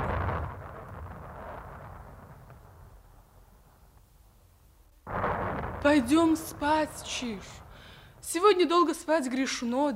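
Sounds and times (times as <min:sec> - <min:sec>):
loud crack: 0:00.0 - 0:03.1, 0:05.0 - 0:08.2
thunder rumbling: 0:00.0 - 0:04.0, 0:05.0 - 0:09.0
speech: 0:05.8 - 0:07.6, 0:08.2 - 0:09.9.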